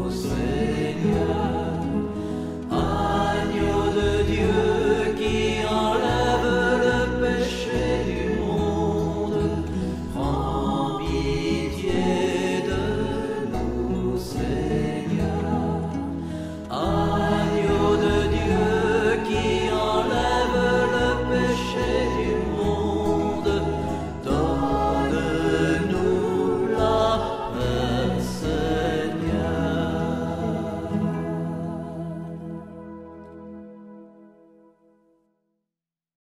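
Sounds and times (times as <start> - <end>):
liturgical piece: 0.0 - 34.9.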